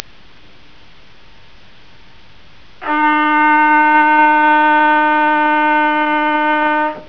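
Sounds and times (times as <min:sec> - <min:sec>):
trumpet: 0:02.8 - 0:07.0.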